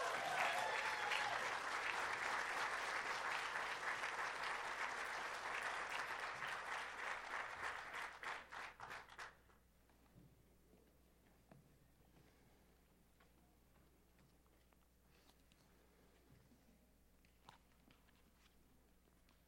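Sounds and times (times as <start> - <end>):
church congregation at 12th Street Baptist applauding to welcome a speaker: 0.0 - 9.5.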